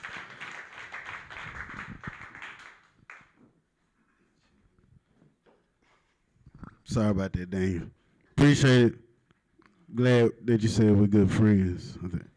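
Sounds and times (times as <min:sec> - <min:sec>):
audience clapping: 0:00.0 - 0:03.4
speech: 0:06.9 - 0:09.0, 0:09.9 - 0:12.3.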